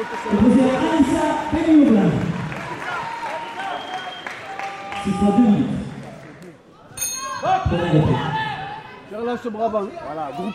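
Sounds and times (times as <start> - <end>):
crowd applauding: 0.0 - 6.6
speech: 5.1 - 5.8, 7.7 - 8.4, 9.1 - 10.5.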